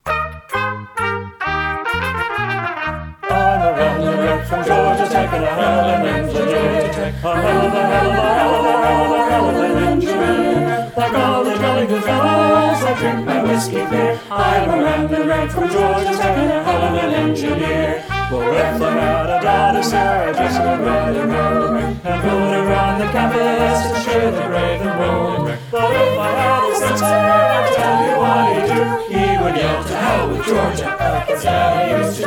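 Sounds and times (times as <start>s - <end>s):
virtual band playing: 0.0s - 32.2s
choir singing: 3.2s - 32.2s.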